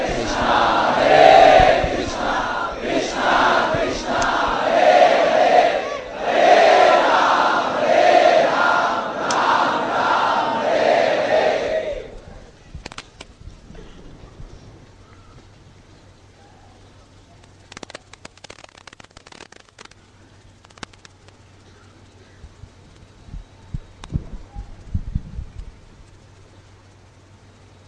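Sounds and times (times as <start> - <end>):
crowd chanting devotional kirtan: 0.0 - 12.3.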